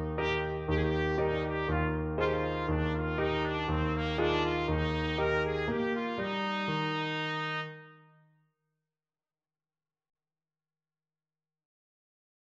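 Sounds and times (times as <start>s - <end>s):
trumpet: 0.0s - 8.2s.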